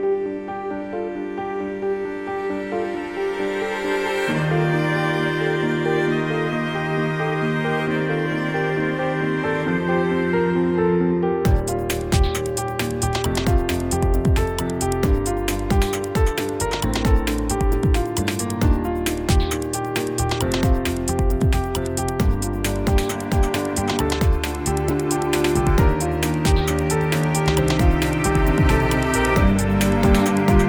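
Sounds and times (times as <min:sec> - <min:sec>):
background music: 0:00.2 - 0:30.6.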